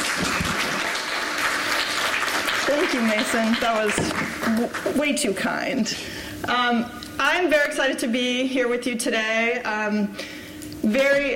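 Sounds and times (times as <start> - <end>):
audience applause: 0.0 - 5.0
speech: 2.9 - 11.3.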